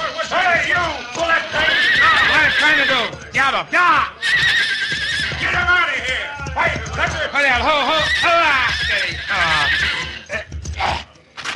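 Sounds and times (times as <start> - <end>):
horse whinnying in a Western radio drama: 0.6 - 3.2, 4.0 - 5.7, 7.7 - 11.1
speech: 2.6 - 4.6, 6.6 - 10.1.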